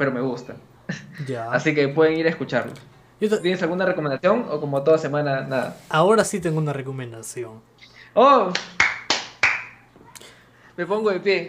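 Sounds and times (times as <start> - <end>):
speech: 0.0 - 8.8, 10.8 - 11.4
hand clapping: 8.5 - 10.3.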